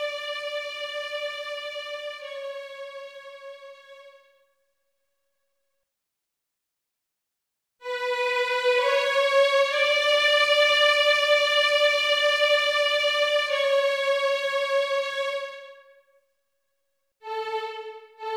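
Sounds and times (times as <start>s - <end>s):
violin piece for children: 0.0s - 4.2s, 7.8s - 15.8s, 17.2s - 18.3s.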